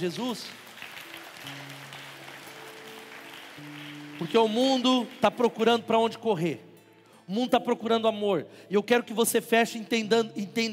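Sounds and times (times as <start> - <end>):
speech: 0.0 - 0.7, 3.6 - 6.7, 7.3 - 10.7
audience applauding: 0.0 - 5.9.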